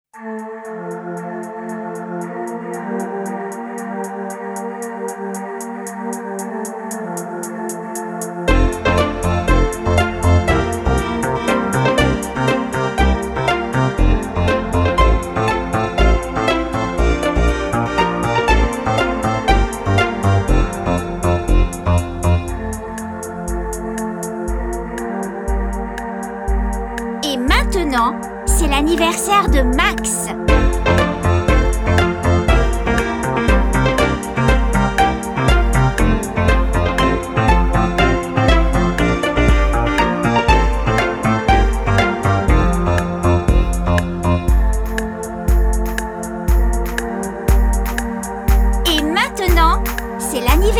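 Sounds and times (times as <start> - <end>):
karaoke backing track: 6.4 - 50.7.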